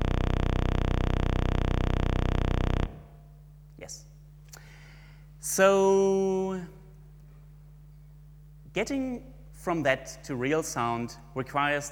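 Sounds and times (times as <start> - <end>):
31.25-hertz sawtooth wave from a program looping a 256-byte output stream: 0.0 - 3.2
speech: 3.8 - 4.1, 5.4 - 6.8, 8.8 - 11.9.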